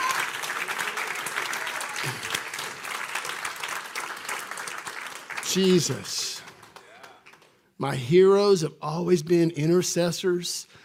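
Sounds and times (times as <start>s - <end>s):
audience clapping: 0.0s - 7.8s
speech: 5.5s - 6.3s, 7.8s - 10.8s.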